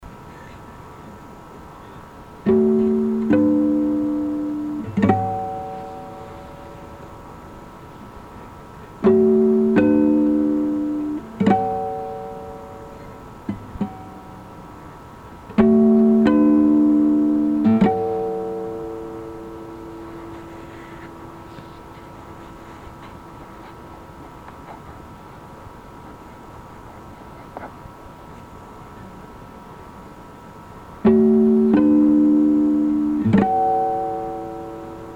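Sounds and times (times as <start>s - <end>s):
guitar: 2.3s - 25.1s, 31.0s - 35.1s.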